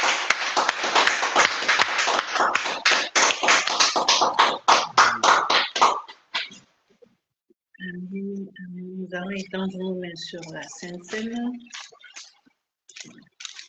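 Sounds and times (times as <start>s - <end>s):
congregation clapping in praise of the Lord during a Christian service: 0.0s - 6.6s
speech: 9.1s - 11.8s.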